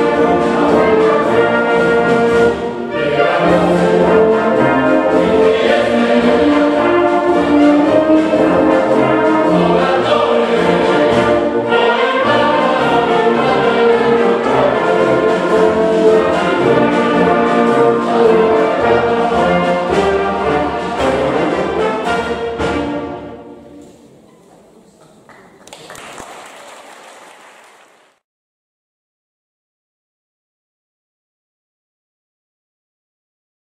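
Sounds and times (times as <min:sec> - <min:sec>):
choir singing in Alpignano: 0:00.0 - 0:23.7
wind band playing in Alpignano: 0:00.0 - 0:23.8.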